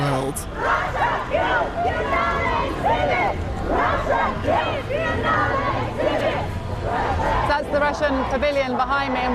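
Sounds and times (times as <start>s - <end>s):
women protesters shouting: 0.1s - 9.3s
speech: 0.3s - 0.7s, 7.6s - 9.3s.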